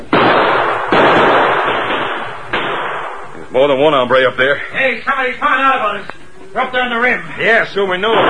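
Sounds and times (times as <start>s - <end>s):
gunfire from behind a big rock up on a rim in cattle country: 0.0s - 3.8s, 8.0s - 8.2s
speech: 3.6s - 8.2s.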